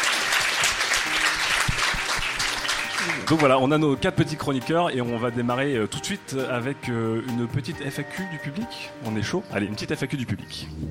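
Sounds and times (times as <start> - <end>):
audience applause: 0.0 - 3.6
speech: 3.3 - 10.8.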